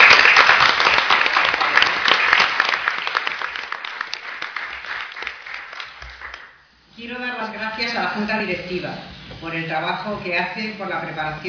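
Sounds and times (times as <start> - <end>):
audience applause: 0.0 - 6.6
speech: 8.1 - 11.4.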